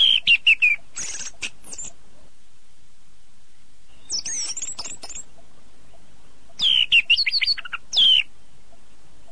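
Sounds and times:
bird song of rapid bright twittering phrases with sweeping whistled notes: 0:00.0 - 0:02.0, 0:03.5 - 0:09.3.

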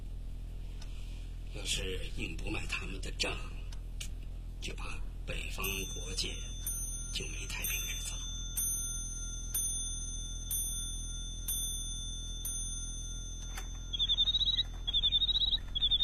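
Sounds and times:
low steady hum: 0:00.0 - 0:16.0
speech: 0:01.5 - 0:03.6, 0:04.6 - 0:08.0
bird-song clock chimes: 0:05.6 - 0:16.0
bird-song clock mechanical chirping trills: 0:05.6 - 0:16.0.

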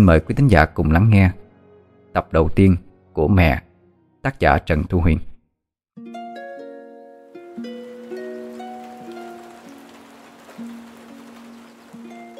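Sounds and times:
speech: 0:00.0 - 0:01.4, 0:02.1 - 0:05.3
steady rain falling: 0:07.3 - 0:12.3.

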